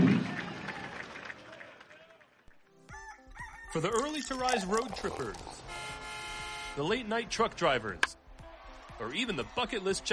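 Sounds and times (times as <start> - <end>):
crowd applause at baseball game: 0.0 - 2.5
speech: 3.7 - 5.8, 6.8 - 8.2, 9.0 - 10.1.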